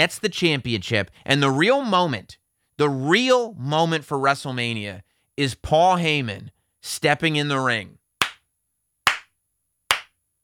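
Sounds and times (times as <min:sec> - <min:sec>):
speech: 0:00.0 - 0:08.0
sharp hand claps in a wrestling ring at WrestleMania: 0:08.2 - 0:08.5, 0:09.1 - 0:10.2.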